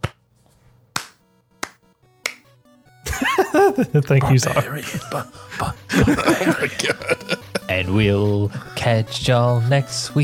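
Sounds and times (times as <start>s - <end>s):
slow clap: 1.0s - 2.5s
laughter: 3.0s - 8.0s
speech: 3.5s - 10.2s.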